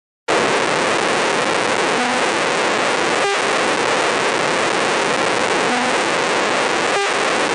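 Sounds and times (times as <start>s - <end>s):
static-like hiss of a neural recording: 0.3s - 7.5s
faint tonal blips: 1.9s - 2.4s, 5.6s - 6.0s.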